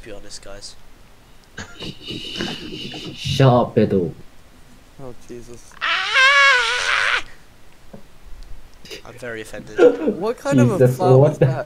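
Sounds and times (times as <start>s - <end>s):
speech: 0.0s - 0.9s, 1.6s - 4.3s, 5.0s - 5.8s, 9.1s - 11.6s
laughter: 1.6s - 3.5s
tortured scream: 5.8s - 7.4s.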